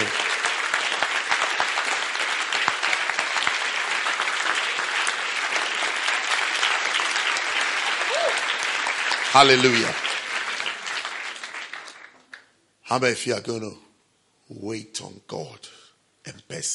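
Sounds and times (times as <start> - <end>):
large group clapping: 0.0 - 12.6
speech: 9.4 - 10.0, 12.9 - 13.8, 14.5 - 16.7.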